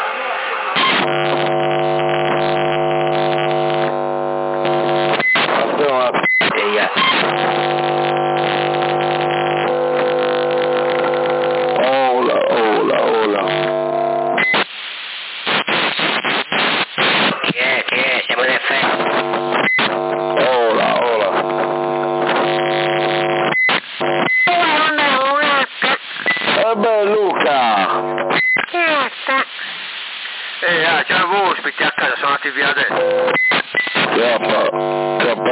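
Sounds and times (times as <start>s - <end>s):
CB radio buzzing tones: 0.7s - 29.8s, 30.6s - 35.5s
CB radio microphone transmit beep chirping: 0.8s - 5.5s, 6.2s - 9.6s, 13.1s - 14.6s, 18.9s - 21.0s, 21.6s - 24.8s, 26.2s - 26.6s, 28.0s - 28.7s, 32.8s - 35.5s.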